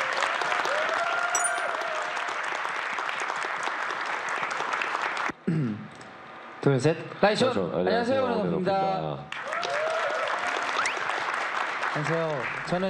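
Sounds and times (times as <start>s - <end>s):
audience applause: 0.0s - 5.4s, 9.3s - 12.8s
speech: 6.6s - 9.4s, 12.0s - 12.8s.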